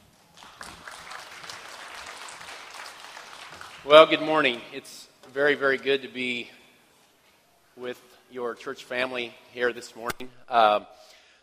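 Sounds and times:
church congregation applauding a guest speaker: 0.0s - 4.6s
speech: 3.8s - 6.6s, 7.8s - 11.4s.

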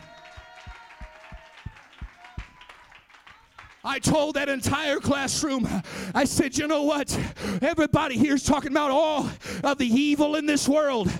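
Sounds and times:
audience clapping hands in a steady rhythm: 0.0s - 4.4s
loud wash of cheering and mingled voices: 0.0s - 5.1s
speech: 3.8s - 11.1s.

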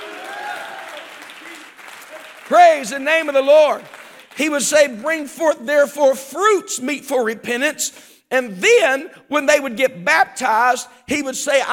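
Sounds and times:
audience clapping hands: 0.0s - 5.3s
speech: 2.5s - 11.7s.

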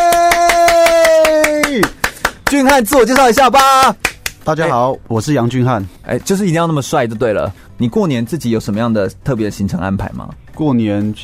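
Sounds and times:
audience applause: 0.0s - 2.8s
speech: 2.5s - 11.2s.

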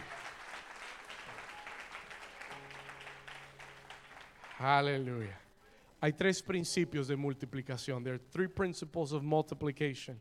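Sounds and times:
loud sustained audience applause: 0.0s - 4.8s
speech: 4.6s - 5.4s, 6.0s - 10.1s.

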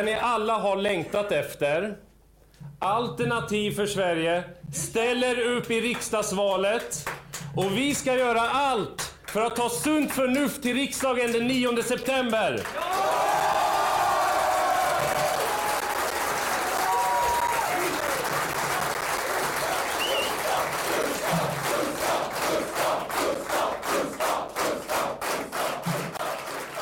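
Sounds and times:
speech: 0.0s - 2.1s, 2.8s - 13.0s
rhythmic unison clapping: 5.3s - 26.8s
crowd applauding and cheering at political rally: 12.6s - 26.8s
scattered whoops and shouts: 12.8s - 16.0s, 16.8s - 18.1s.

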